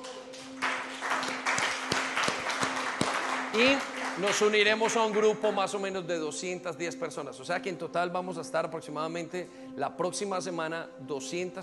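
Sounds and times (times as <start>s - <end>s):
audience applause: 0.0s - 5.5s
speech: 3.6s - 11.6s.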